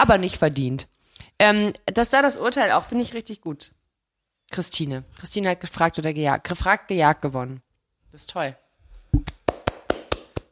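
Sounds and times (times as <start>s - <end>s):
speech: 0.0s - 3.8s, 4.5s - 8.6s
person clapping hands: 9.2s - 10.5s.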